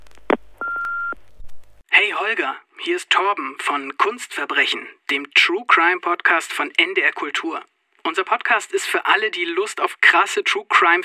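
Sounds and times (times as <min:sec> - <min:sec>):
answering machine electronic beep: 0:00.6 - 0:01.2
speech: 0:02.2 - 0:11.0.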